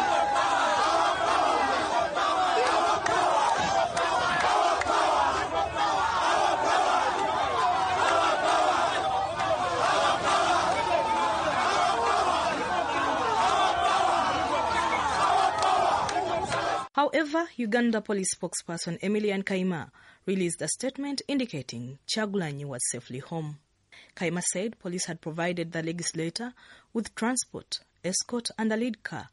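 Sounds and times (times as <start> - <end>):
large crowd chanting slogans: 0.0 - 16.9
speech: 17.2 - 29.3.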